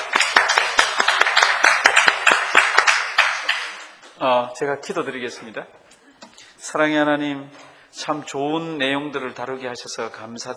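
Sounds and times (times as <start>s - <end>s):
church congregation clapping to congratulate a female church elder: 0.0s - 4.0s
speech: 4.2s - 5.8s, 6.6s - 10.5s.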